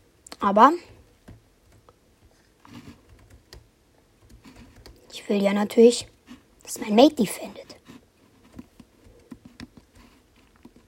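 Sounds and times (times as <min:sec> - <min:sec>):
speech: 0:00.4 - 0:00.9, 0:05.3 - 0:06.1, 0:06.7 - 0:07.6
typing on a computer keyboard: 0:02.9 - 0:05.1, 0:08.5 - 0:10.8.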